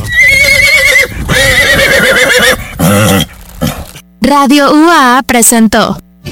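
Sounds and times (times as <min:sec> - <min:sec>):
horse neighing: 0:00.0 - 0:03.9
speech: 0:04.3 - 0:06.0.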